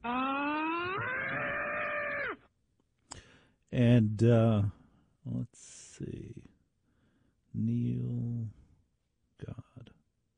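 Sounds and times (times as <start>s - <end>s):
man screaming from a soundboard: 0.0s - 2.4s
speech: 3.7s - 6.5s, 7.6s - 8.6s, 9.4s - 10.3s.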